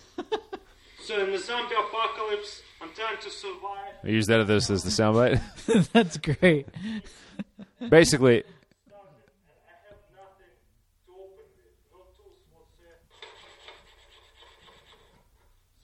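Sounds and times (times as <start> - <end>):
laughter: 0.0 - 1.0, 4.6 - 8.2
speech: 1.1 - 8.6
tin can of tuna ground by hand against concrete: 13.1 - 15.3.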